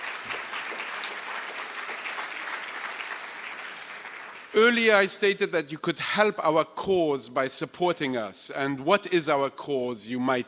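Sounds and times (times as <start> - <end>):
crowd clapping: 0.0 - 5.3
speech: 4.6 - 10.4.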